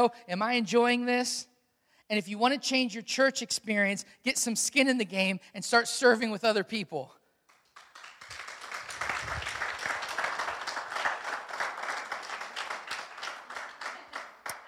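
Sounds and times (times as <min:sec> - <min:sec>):
speech: 0:00.0 - 0:01.5, 0:02.1 - 0:07.2
light clapping from audience: 0:07.5 - 0:14.6.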